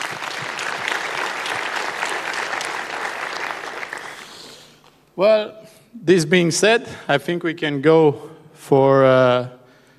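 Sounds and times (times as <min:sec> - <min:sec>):
audience applause: 0:00.0 - 0:04.5
speech: 0:05.2 - 0:09.6.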